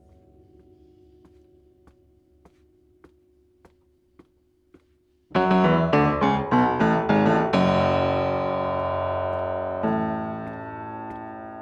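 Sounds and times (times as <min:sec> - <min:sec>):
piano: 0:00.0 - 0:02.9, 0:05.3 - 0:11.5.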